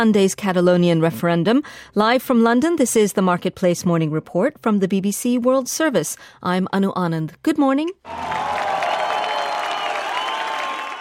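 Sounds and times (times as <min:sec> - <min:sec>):
speech: 0:00.0 - 0:08.8
crowd cheering after referendum: 0:08.1 - 0:10.9.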